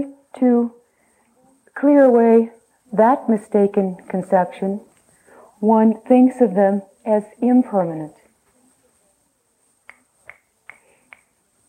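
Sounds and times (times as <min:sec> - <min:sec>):
speech: 0:00.0 - 0:00.8, 0:01.8 - 0:04.9, 0:05.6 - 0:08.2
finger snap: 0:09.8 - 0:11.4.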